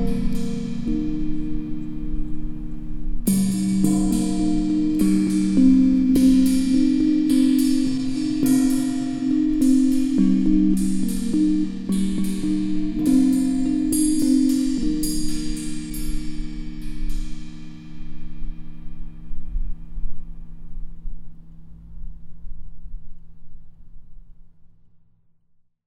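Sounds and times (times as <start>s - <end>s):
gongs: 0.0s - 24.1s.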